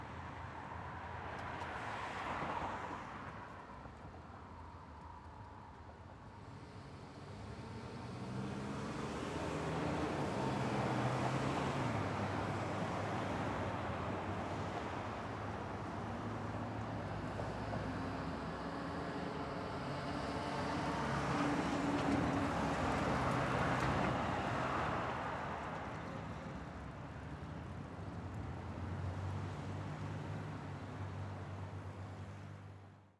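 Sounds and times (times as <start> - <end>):
traffic on a curve: 0.0 - 33.1.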